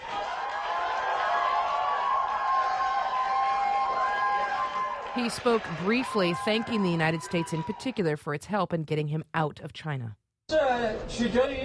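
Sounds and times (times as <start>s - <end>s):
crowd of supporters cheering: 0.0s - 8.3s
speech: 5.2s - 10.2s, 10.8s - 11.6s.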